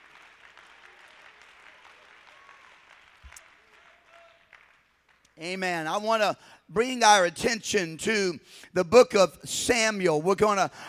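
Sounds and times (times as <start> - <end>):
audience clapping hands: 0.0 - 5.4
speech: 5.4 - 10.8.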